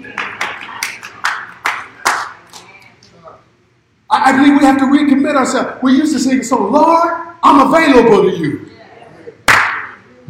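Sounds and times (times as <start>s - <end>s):
scattered hand claps from a few people: 0.0s - 2.7s, 9.4s - 10.0s
speech: 4.1s - 8.6s.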